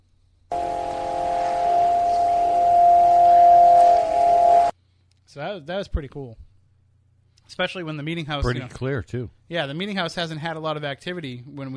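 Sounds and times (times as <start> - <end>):
Spiricom droning electronic tones: 0.5 - 4.7
speech: 5.4 - 6.5, 7.5 - 11.7.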